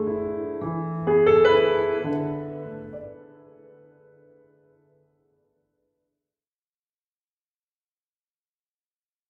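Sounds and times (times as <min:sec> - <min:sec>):
piano: 0:00.0 - 0:05.6.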